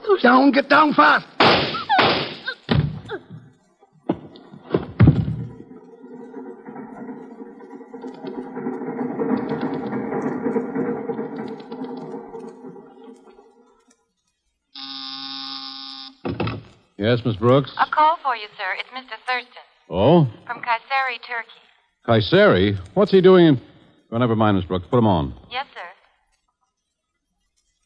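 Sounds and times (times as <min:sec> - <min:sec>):
speech: 0:00.1 - 0:01.7, 0:17.1 - 0:25.7
heavy clunks and thuds: 0:04.1 - 0:13.4.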